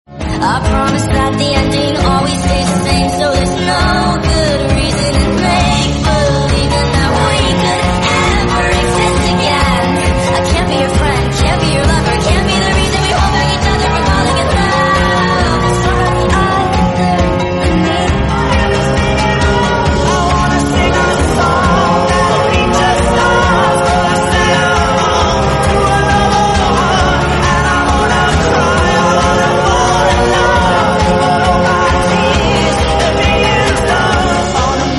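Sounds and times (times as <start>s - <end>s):
remixed English song: 0.1s - 34.9s.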